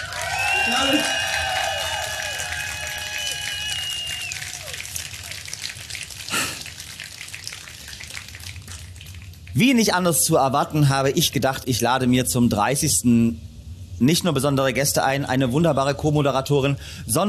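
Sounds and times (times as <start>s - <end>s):
live audience applauding outdoors: 0.0s - 9.6s
speech: 0.7s - 1.2s, 9.6s - 17.2s.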